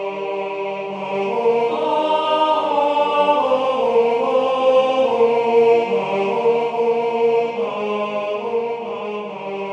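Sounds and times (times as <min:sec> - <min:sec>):
man singing sacred music: 0:00.0 - 0:09.6.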